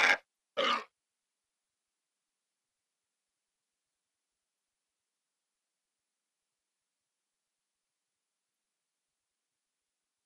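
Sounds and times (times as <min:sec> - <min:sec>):
wild boar distress calls: 0:00.0 - 0:00.9.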